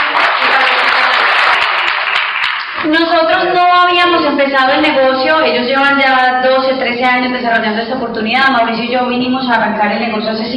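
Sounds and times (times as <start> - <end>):
audience applause: 0.0 - 2.8
speech: 2.8 - 10.5.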